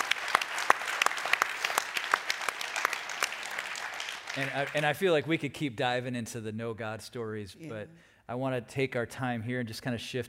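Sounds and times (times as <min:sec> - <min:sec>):
audience clapping: 0:00.0 - 0:05.5
speech: 0:04.4 - 0:10.2.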